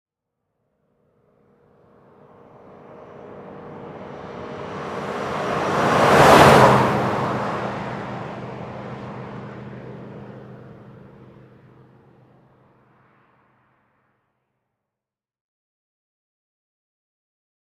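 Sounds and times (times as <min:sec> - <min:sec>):
Ford Expedition passing by at 50 mph: 0:01.4 - 0:13.5.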